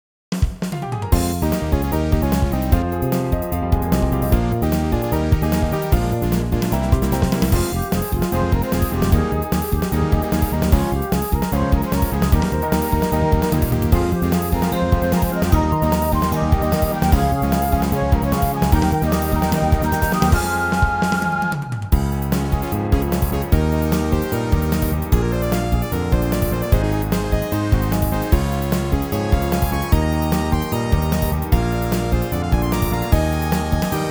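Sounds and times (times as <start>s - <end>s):
RPG battle music: 1.2s - 34.0s.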